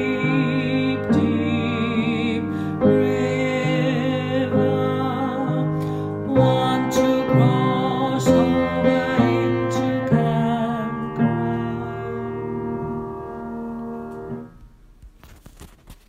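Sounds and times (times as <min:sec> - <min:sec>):
music piece: 0:00.0 - 0:14.7.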